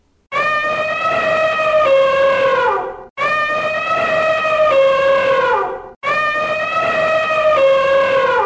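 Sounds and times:
elephant trumpeting: 0:00.3 - 0:08.4.

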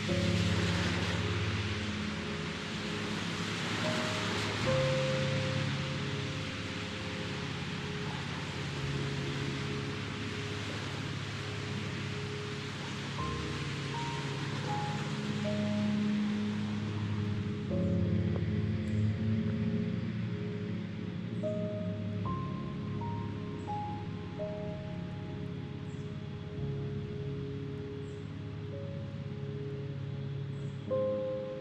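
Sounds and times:
cars passing on a rainy day: 0:00.0 - 0:31.5
city noise on a rainy day: 0:00.0 - 0:31.5
soft calming piano music: 0:00.0 - 0:31.5.

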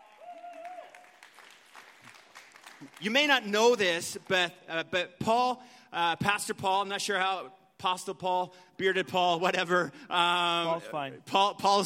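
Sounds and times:
crowd clapping: 0:00.0 - 0:04.4
speech: 0:02.8 - 0:11.8.

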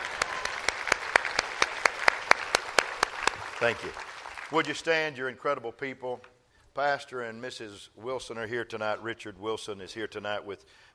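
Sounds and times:
hands clapping in a steady quick rhythm: 0:00.0 - 0:04.9
speech: 0:03.6 - 0:10.9.

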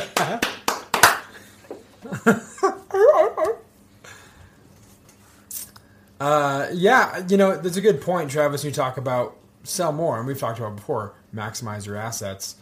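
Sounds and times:
laughter: 0:00.0 - 0:00.6, 0:02.0 - 0:03.6
hand clap for recording sync: 0:00.0 - 0:01.8
speech: 0:02.2 - 0:02.5, 0:06.2 - 0:12.5.

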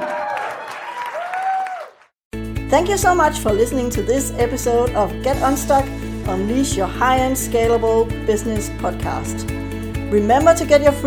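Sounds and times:
audience applause: 0:00.0 - 0:02.0
speech: 0:02.7 - 0:11.0.

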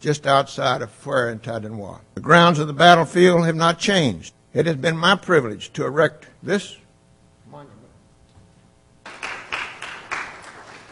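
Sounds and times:
speech: 0:00.0 - 0:06.8, 0:07.5 - 0:07.8
audience applause: 0:09.0 - 0:10.9.

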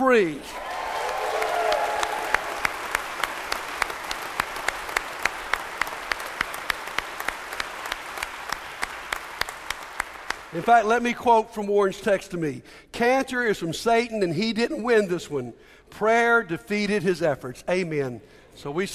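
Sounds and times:
speech: 0:00.1 - 0:00.6, 0:10.5 - 0:18.9
audience applause: 0:00.5 - 0:10.6.

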